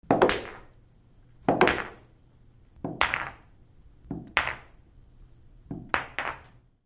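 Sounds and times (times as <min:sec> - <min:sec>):
billiard balls in action: 0:00.0 - 0:00.8, 0:01.4 - 0:02.1, 0:02.8 - 0:03.5, 0:04.1 - 0:04.8, 0:05.7 - 0:06.6.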